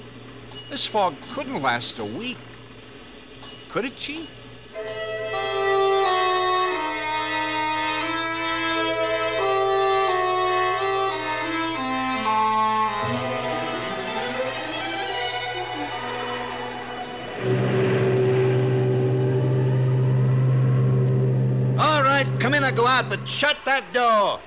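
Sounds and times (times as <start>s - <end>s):
speech: 0.7s - 2.5s, 3.7s - 5.4s, 22.9s - 24.4s
deep foghorn blaring: 4.8s - 23.6s.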